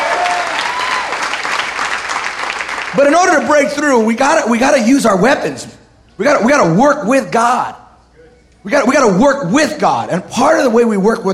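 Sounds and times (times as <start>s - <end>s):
audience clapping: 0.0s - 3.6s
speech: 3.0s - 7.8s, 8.6s - 11.3s.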